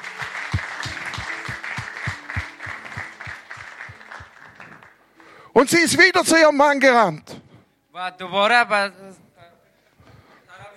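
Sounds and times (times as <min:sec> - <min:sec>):
audience applause: 0:00.0 - 0:05.0
speech: 0:05.6 - 0:07.4, 0:08.0 - 0:09.0.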